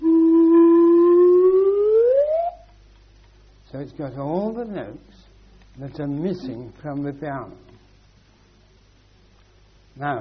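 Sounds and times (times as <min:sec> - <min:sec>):
slide whistle gliding upward: 0:00.0 - 0:02.7
speech: 0:03.9 - 0:07.7, 0:10.0 - 0:10.1.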